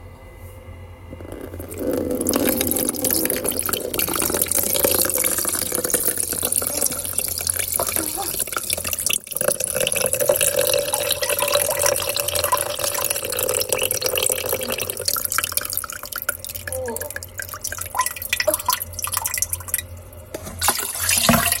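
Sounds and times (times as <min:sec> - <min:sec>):
urinating into a washbasin in a toilet: 0:01.1 - 0:21.5.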